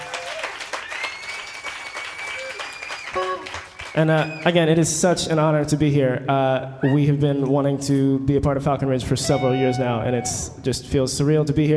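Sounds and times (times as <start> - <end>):
audience applause: 0.0 - 4.7
speech: 4.0 - 11.7.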